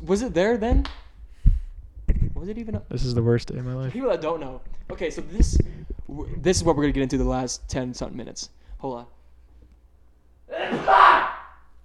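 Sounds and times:
speech: 0.1s - 1.0s, 2.4s - 9.2s
person sneezing: 10.5s - 11.5s.

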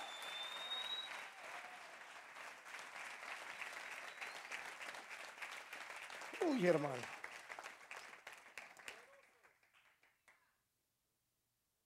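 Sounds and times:
audience applauding: 0.0s - 10.4s
speech: 6.4s - 7.2s.

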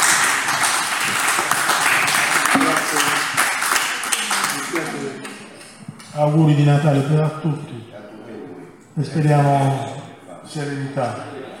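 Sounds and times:
audience applauding for the author: 0.0s - 5.8s
speech: 6.2s - 8.0s, 9.0s - 11.4s.

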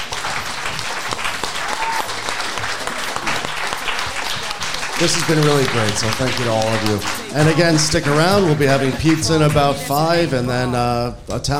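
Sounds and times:
audience applause for panelists: 0.0s - 11.0s
speech: 5.0s - 11.5s.

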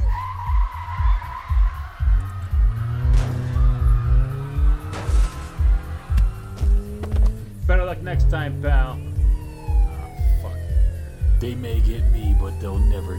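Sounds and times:
car tires skidding: 0.0s - 10.2s
car engine revving: 0.0s - 13.1s
steady rhythmic low thumping: 0.0s - 13.1s
speech: 8.0s - 9.1s, 11.4s - 13.1s.

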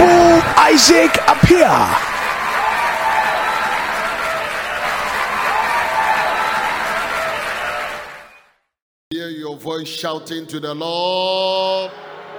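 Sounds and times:
standing ovation, thunderous applause: 0.0s - 8.4s
speech: 0.8s - 2.1s, 9.8s - 12.1s.

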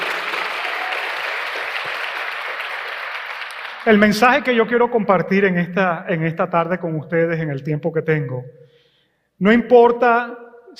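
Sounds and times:
audience applause for fathers: 0.0s - 4.8s
speech: 3.9s - 8.6s, 9.4s - 10.7s.

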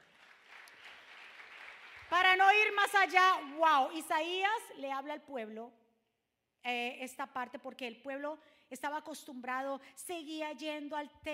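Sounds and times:
audience applause: 0.0s - 2.1s
speech: 2.1s - 5.8s, 6.6s - 11.3s.

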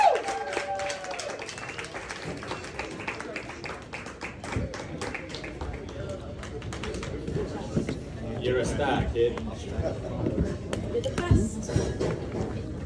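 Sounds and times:
audience applause welcoming stand-up comedians: 0.0s - 7.3s
speech: 8.5s - 12.6s.

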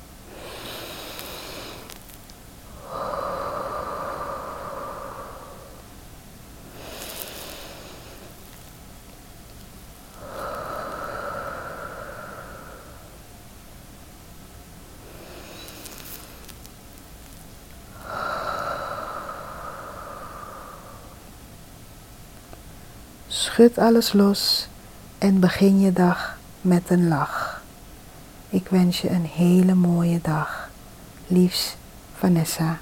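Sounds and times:
slow breaths in through the nose and out through the mouth: 0.2s - 8.7s, 10.1s - 13.7s, 15.0s - 16.7s, 17.9s - 21.4s
speech: 23.6s - 27.4s, 28.6s - 30.6s, 31.3s - 32.8s.

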